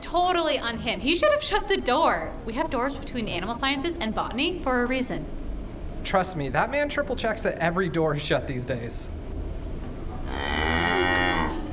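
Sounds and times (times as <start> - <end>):
speech: 0.1 - 5.4, 6.0 - 9.2
cow mooing: 10.2 - 11.7.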